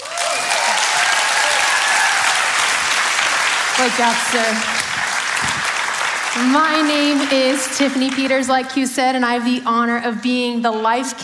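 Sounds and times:
audience applause welcoming a speaker at a church service: 0.0s - 8.4s
speech: 3.8s - 4.9s, 6.3s - 11.2s.

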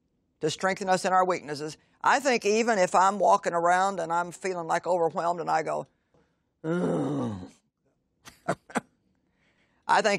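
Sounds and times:
speech: 0.4s - 6.0s, 6.6s - 7.4s, 9.9s - 10.1s
breathy grunts: 6.6s - 7.6s
person groaning: 6.6s - 7.6s.

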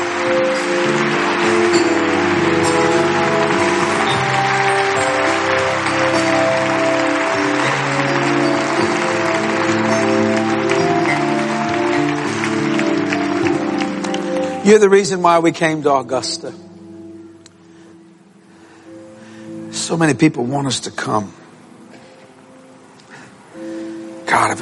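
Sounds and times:
audience hand clapping: 0.0s - 15.0s
speech: 14.7s - 16.7s, 19.9s - 21.4s.

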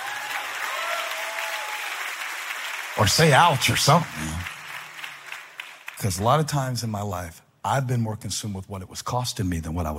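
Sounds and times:
church congregation applause during a sermon: 0.0s - 6.7s
speech: 3.0s - 4.5s, 6.0s - 9.9s.

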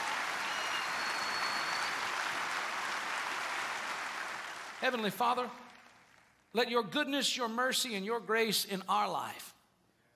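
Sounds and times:
audience clapping hands in praise: 0.0s - 6.5s
speech: 4.8s - 5.6s, 6.5s - 9.5s.

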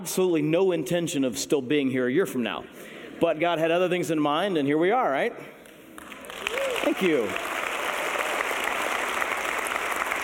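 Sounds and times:
speech: 0.0s - 5.6s, 6.8s - 7.5s
audience clapping: 5.9s - 10.2s.

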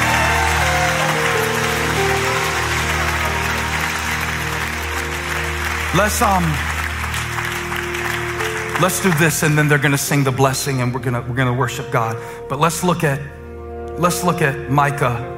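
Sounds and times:
audience clapping hands: 0.0s - 10.3s
speech: 6.0s - 6.7s, 8.8s - 13.4s, 14.0s - 15.3s.

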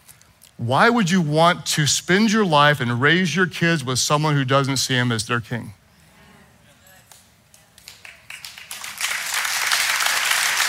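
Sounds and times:
speech: 0.6s - 5.8s
audience clapping: 7.8s - 10.6s.

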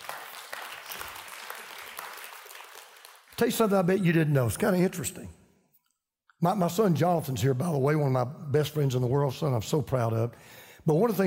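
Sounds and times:
audience clapping: 0.0s - 4.1s
speech: 3.4s - 5.4s, 6.4s - 11.2s.

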